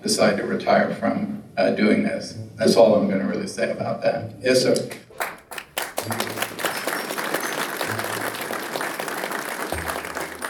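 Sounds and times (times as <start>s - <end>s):
speech: 0.0s - 5.3s
audience applause: 5.2s - 10.4s.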